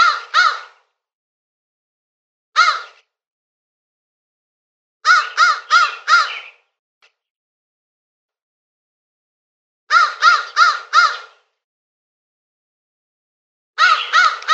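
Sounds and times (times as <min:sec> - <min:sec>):
crow cawing with harsh rasping notes: 0:00.0 - 0:00.8, 0:02.6 - 0:03.0, 0:05.0 - 0:06.6, 0:09.9 - 0:11.4, 0:13.8 - 0:14.5.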